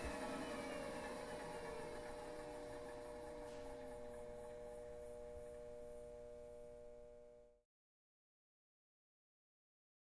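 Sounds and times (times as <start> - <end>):
electric industrial heater turned on and off: 0.0 - 7.6.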